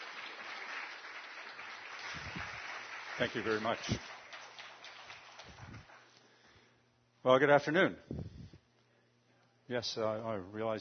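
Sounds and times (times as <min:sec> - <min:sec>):
audience applause welcoming a speaker at a morning talk: 0:00.0 - 0:06.2
speech: 0:03.2 - 0:04.2, 0:07.2 - 0:08.2, 0:09.7 - 0:10.7.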